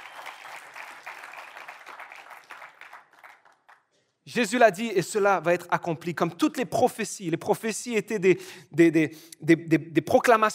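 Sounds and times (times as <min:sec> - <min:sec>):
crowd applause: 0:00.0 - 0:03.8
speech: 0:04.3 - 0:10.5.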